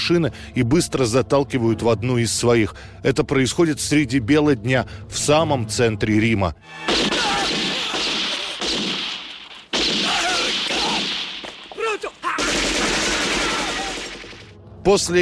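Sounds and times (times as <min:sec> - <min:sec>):
speech: 0:00.1 - 0:07.1, 0:14.8 - 0:15.2
automatic weapon gunfire: 0:06.9 - 0:11.5, 0:12.3 - 0:14.5.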